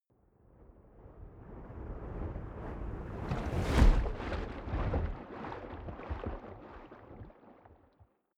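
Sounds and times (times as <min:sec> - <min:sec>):
big waves splashing: 0:01.0 - 0:07.2.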